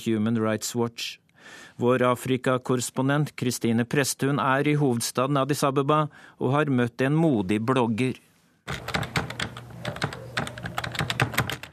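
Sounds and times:
speech: 0:00.0 - 0:09.0
typing on a computer keyboard: 0:08.7 - 0:11.7.

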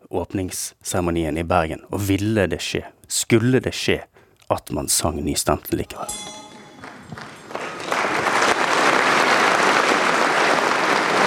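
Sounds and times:
speech: 0:00.1 - 0:06.4
applause after opening ceremony: 0:06.8 - 0:11.2.

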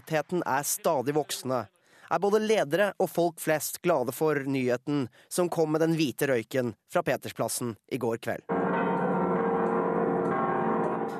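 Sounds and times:
speech: 0:00.1 - 0:08.6
cathedral church bells ringing: 0:08.5 - 0:11.1.

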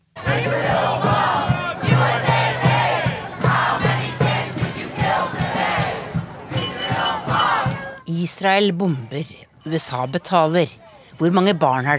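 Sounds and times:
student protesters chanting a slogan: 0:00.2 - 0:08.1
speech: 0:08.3 - 0:11.9.

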